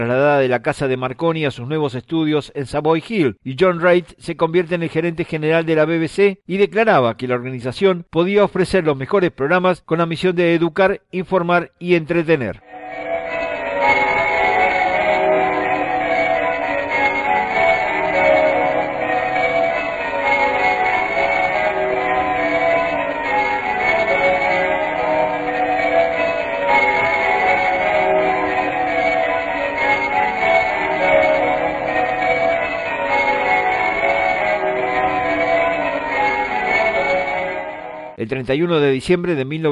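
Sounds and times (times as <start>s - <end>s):
speech: 0.0s - 13.1s, 38.2s - 39.7s
Big Ben clock tower bell chimes: 12.6s - 38.2s.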